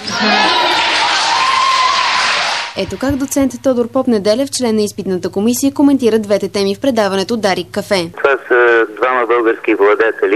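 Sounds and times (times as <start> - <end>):
applause and cheering from university applicants in an exam hall: 0.3 - 2.8
speech: 2.8 - 10.3.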